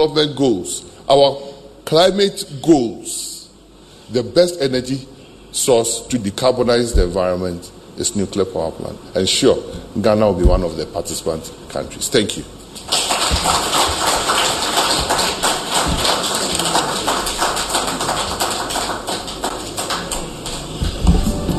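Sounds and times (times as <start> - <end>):
speech: 0.0 - 3.3, 4.1 - 13.7
audience applause: 12.8 - 21.4.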